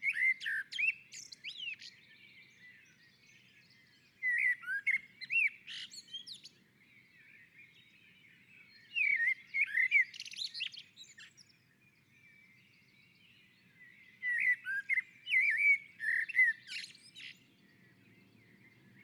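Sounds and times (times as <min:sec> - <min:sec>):
common blackbird fluty whistles and squeaky notes: 0:00.0 - 0:19.0.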